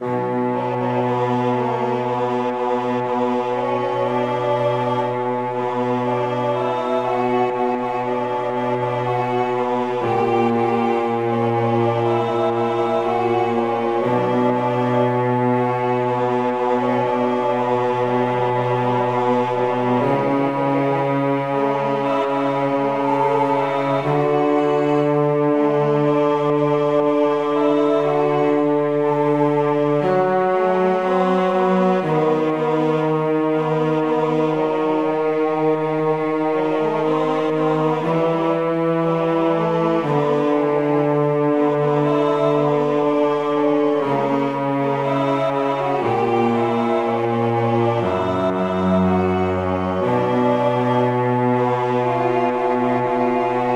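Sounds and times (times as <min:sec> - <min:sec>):
recitative singing: 0:00.0 - 0:53.7.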